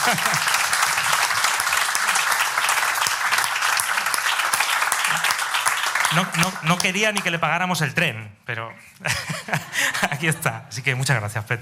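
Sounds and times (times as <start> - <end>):
laughter: 0.0 - 1.4, 9.0 - 10.6
audience applause: 0.0 - 7.4
speech: 0.1 - 0.6, 6.1 - 11.6.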